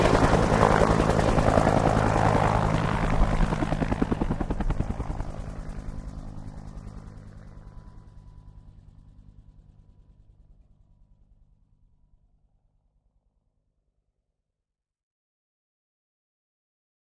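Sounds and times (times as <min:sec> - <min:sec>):
Huey helicopter main engine: 0:00.0 - 0:10.6.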